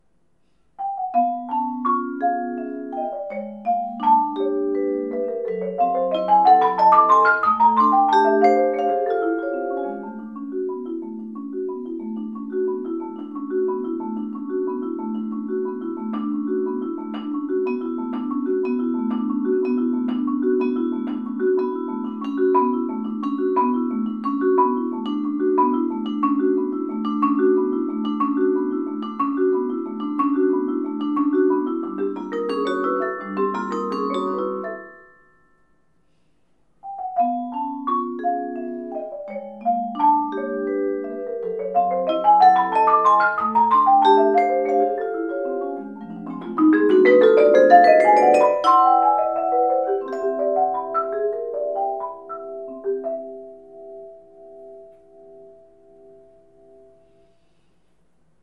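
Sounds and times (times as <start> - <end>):
percussion: 0.0 - 58.4.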